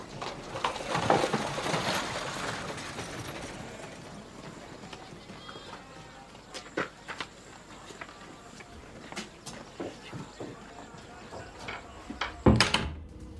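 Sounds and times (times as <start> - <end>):
carriage horse hooves clip-clopping: 0.0 - 12.4
knocks and footsteps: 0.0 - 13.3
house door shutting: 11.7 - 13.3.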